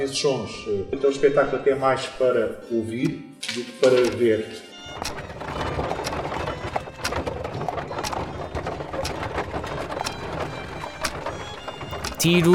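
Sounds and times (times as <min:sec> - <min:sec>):
speech: 0:00.0 - 0:05.2, 0:12.2 - 0:12.5
horse-drawn carriage hoof beats: 0:05.0 - 0:11.9.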